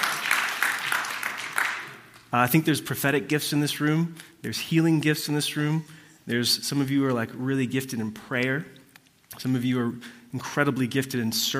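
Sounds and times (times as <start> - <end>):
audience clapping: 0.0 - 2.3
speech: 2.3 - 11.5.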